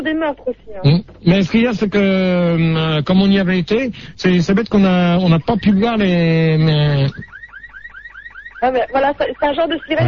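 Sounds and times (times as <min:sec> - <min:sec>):
speech: 0:00.0 - 0:07.3, 0:08.6 - 0:10.0
voice imitating a police siren: 0:08.7 - 0:10.0.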